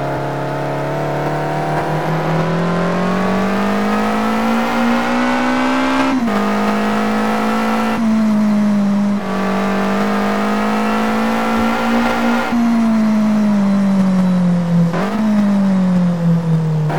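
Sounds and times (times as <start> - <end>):
Ferrari F430 engine: 0.0 - 16.9.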